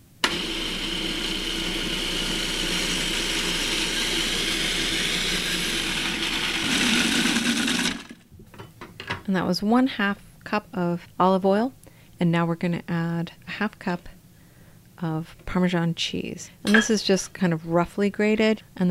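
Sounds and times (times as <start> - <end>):
food processor running: 0.2 - 8.2
speech: 9.3 - 14.2, 15.0 - 18.9.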